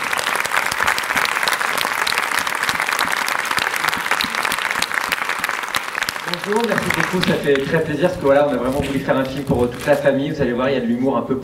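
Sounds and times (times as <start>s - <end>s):
audience applause: 0.0s - 8.5s
speech: 6.4s - 11.4s.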